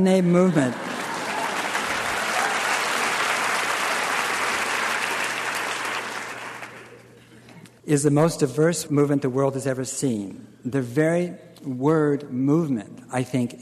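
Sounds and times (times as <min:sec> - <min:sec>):
speech: 0:00.0 - 0:00.8, 0:07.9 - 0:13.6
audience applause: 0:00.2 - 0:07.2.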